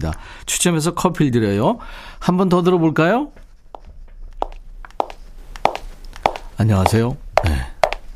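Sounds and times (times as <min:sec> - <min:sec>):
speech: 0:00.0 - 0:03.4, 0:06.6 - 0:07.7
woman's shoes clicking footsteps: 0:03.7 - 0:08.1.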